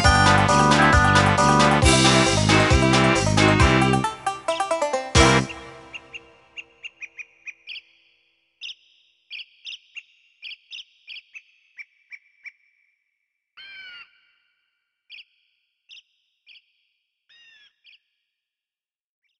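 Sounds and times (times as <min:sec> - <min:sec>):
main titles music: 0:00.0 - 0:06.5.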